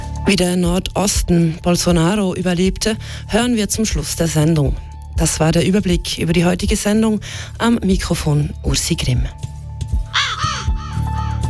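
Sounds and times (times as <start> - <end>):
low musical hum: 0.0 - 11.4
speech: 0.3 - 9.5
raven cawing in station jingle: 10.0 - 11.4.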